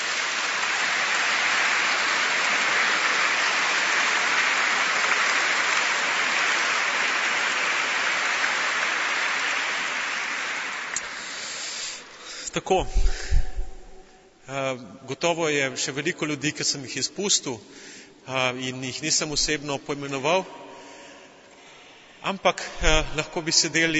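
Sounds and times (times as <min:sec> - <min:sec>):
audience applause: 0:00.0 - 0:12.8
speech: 0:12.6 - 0:13.4, 0:14.5 - 0:20.6, 0:22.2 - 0:23.9.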